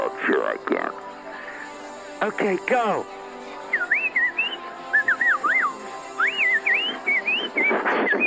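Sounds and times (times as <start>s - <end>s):
speech: 0.5s - 1.2s, 2.2s - 3.2s
person whistling bird-like calls: 3.7s - 8.2s.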